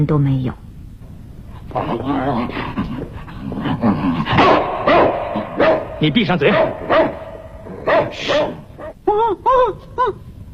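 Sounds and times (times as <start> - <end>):
speech: 0.0 - 0.6, 1.7 - 5.1, 6.0 - 7.2, 7.8 - 10.3
dog barking: 4.3 - 9.0.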